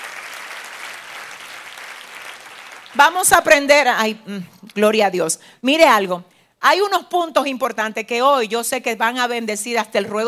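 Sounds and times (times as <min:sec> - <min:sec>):
audience applause: 0:00.0 - 0:03.0
speech: 0:02.9 - 0:10.2.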